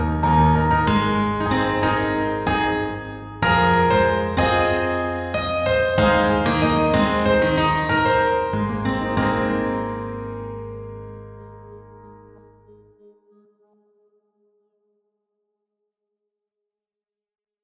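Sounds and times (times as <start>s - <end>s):
pentatonic melody: 0.0s - 12.9s.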